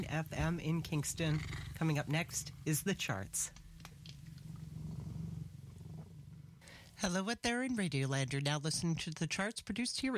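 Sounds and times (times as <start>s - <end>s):
speech: 0.0s - 3.6s, 7.0s - 10.1s
cat purring: 0.0s - 7.0s.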